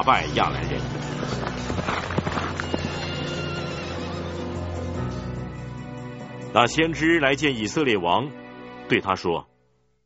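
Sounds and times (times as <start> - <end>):
speech: 0.0 - 2.8, 6.6 - 9.5
hoofbeats of fleeing cavalry: 0.2 - 5.2
horses neighing as riders flee a battle: 0.9 - 4.8.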